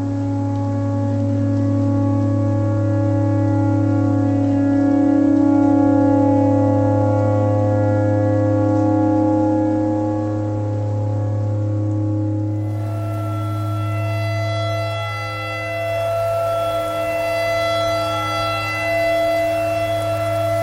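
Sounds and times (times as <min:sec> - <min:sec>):
tornado siren: 0:00.0 - 0:20.6
clarinet: 0:12.5 - 0:20.6.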